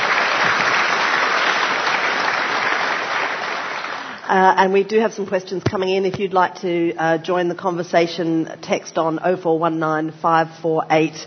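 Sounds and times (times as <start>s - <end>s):
audience applause: 0.0s - 4.2s
speech: 4.3s - 11.2s.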